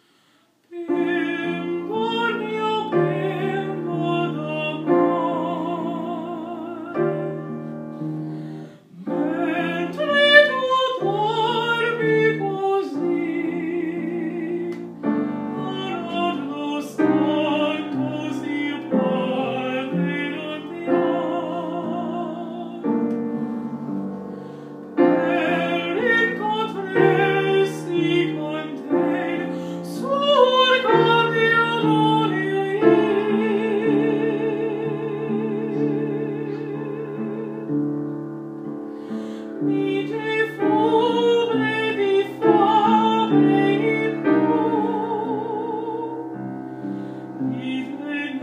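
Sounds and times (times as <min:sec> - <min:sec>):
opera singing: 0:00.7 - 0:07.8, 0:08.8 - 0:38.3, 0:39.1 - 0:46.6, 0:47.3 - 0:48.4.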